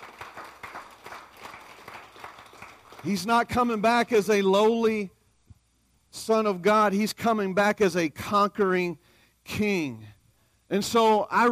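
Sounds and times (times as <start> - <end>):
church congregation clapping in praise during a morning service: 0.0 - 3.8
speech: 3.0 - 5.2, 6.2 - 10.1, 10.7 - 11.5.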